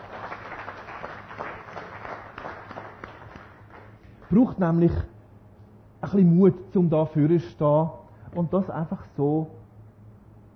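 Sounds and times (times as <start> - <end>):
audience applause: 0.0 - 4.4
speech: 4.3 - 5.1, 6.0 - 9.6.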